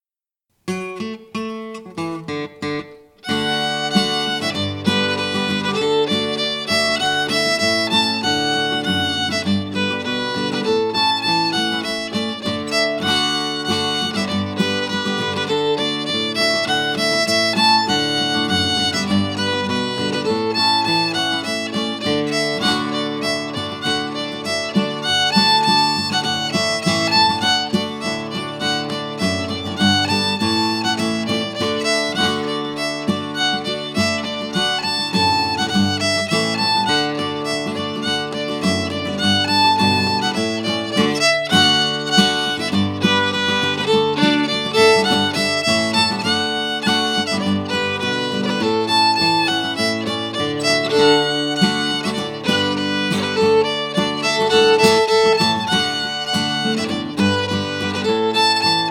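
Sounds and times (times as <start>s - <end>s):
folk song: 0.7s - 58.9s.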